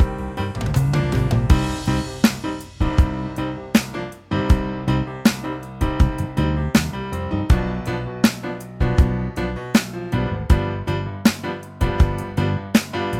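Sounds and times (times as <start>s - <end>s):
funky trio arrangement in C minor: 0.0s - 13.1s.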